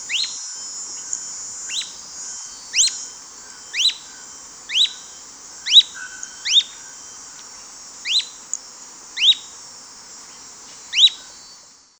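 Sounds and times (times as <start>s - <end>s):
bird call notes: 0.0s - 8.6s
faint high hiss: 0.0s - 11.9s.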